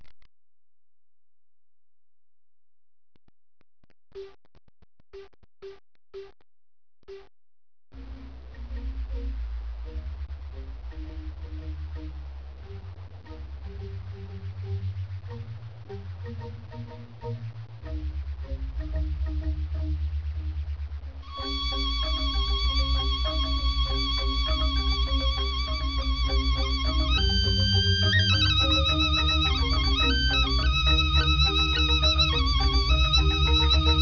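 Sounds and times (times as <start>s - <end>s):
8-bit Balinese tabuh music: 8.0s - 33.9s.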